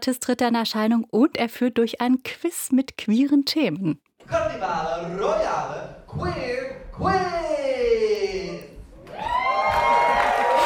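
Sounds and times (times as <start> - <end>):
speech: 0.0 - 8.2
enthusiastic audience cheering and applause: 8.9 - 10.6.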